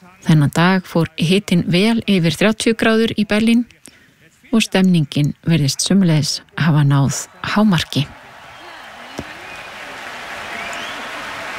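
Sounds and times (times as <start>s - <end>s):
speech: 0.1s - 3.8s, 4.5s - 8.2s
concert audience cheering and applauding at an open-air stage in Berlin: 7.2s - 11.5s.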